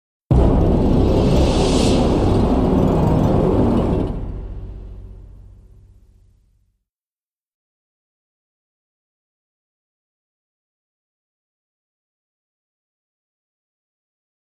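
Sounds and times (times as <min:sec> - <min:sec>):
low danger atmosphere: 0:00.3 - 0:06.6.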